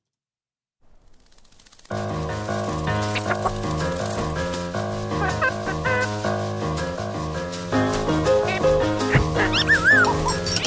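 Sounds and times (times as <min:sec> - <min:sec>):
busy trailer music: 0:02.1 - 0:10.6
cartoon dog barking and whimpering: 0:09.2 - 0:10.4.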